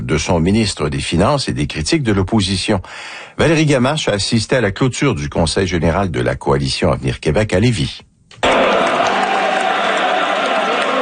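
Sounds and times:
speech: 0.1 - 8.4
party supporters cheering and applauding at a Coalition Avenir Québec general council in Lévis: 8.4 - 11.0.

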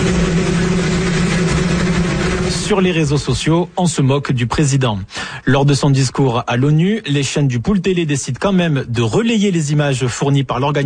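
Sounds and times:
helicopter noise: 0.0 - 3.8
speech: 2.7 - 10.8.

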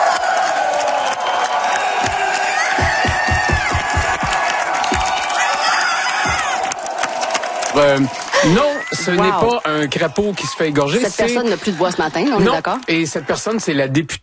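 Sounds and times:
political rally crowd cheering: 0.0 - 14.0
rhythmic clapping or stomping: 0.1 - 8.4
speech: 7.8 - 14.2.

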